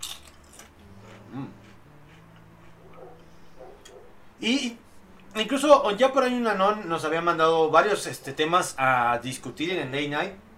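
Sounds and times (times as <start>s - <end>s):
chewing and swallowing potato chips: 0.0s - 4.0s
speech: 4.4s - 4.8s, 5.4s - 10.4s.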